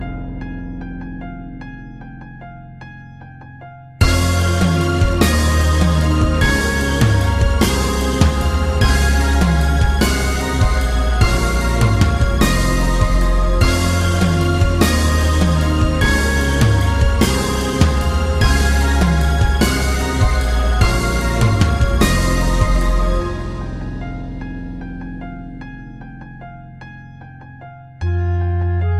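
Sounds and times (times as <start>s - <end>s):
magic bell mix: 4.0s - 25.1s.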